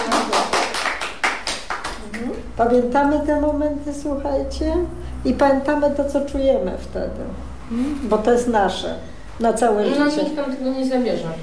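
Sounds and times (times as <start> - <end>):
applause: 0.0 - 2.3
speech: 2.6 - 11.4.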